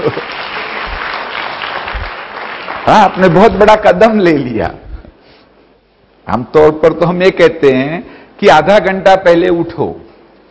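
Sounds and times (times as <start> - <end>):
speech: 0.0 - 0.4, 2.9 - 4.8, 6.3 - 10.0
seated audience clapping for themselves after a morning yoga session: 0.0 - 3.9.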